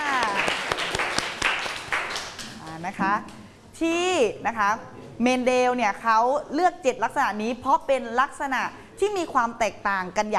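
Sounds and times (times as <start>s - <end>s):
group clapping in a classroom: 0.0s - 3.4s
speech: 2.9s - 10.3s.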